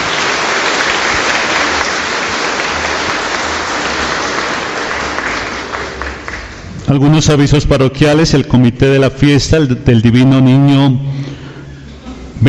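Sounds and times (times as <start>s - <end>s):
audience applauding: 0.0s - 6.8s
speech: 6.9s - 11.4s.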